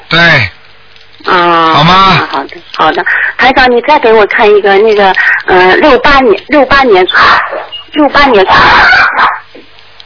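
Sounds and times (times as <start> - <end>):
speech: 0.1 - 0.5, 1.8 - 9.7
dog yipping and whining over a telephone line: 7.1 - 7.9.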